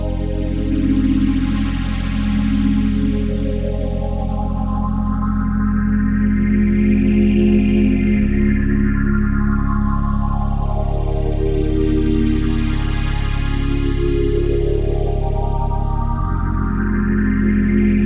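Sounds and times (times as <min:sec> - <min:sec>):
wet string machine synthesizer: 0:00.0 - 0:18.0.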